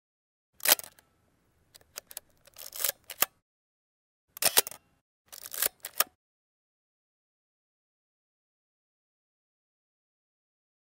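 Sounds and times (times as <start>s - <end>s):
camera sound: 0.6s - 1.0s, 1.8s - 3.4s, 4.3s - 6.2s.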